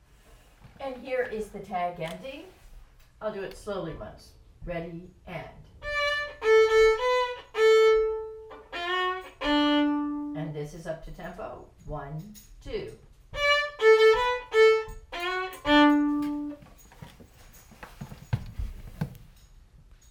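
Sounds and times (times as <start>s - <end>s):
folk tune: 5.8s - 10.4s, 13.4s - 16.8s.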